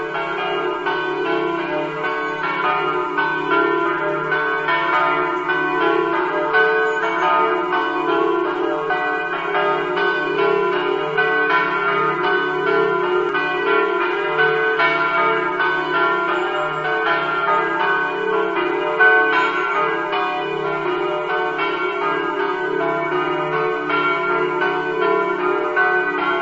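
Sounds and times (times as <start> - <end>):
bells in Orsaria: 0.0 - 26.4.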